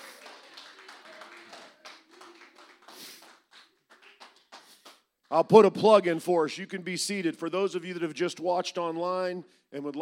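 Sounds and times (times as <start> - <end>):
audience applause: 0.0 - 5.0
speech: 5.3 - 10.0.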